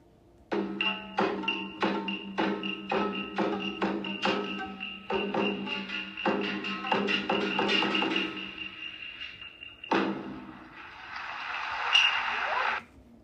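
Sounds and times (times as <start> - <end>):
kabuki geza offstage music percussive strikes with ringing metallic tones: 0.5 - 12.4
hissing clapping-like noise: 10.6 - 12.8.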